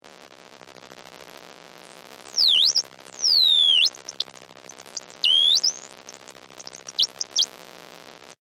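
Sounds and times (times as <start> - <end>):
science fiction transmission burst: 2.3 - 7.5.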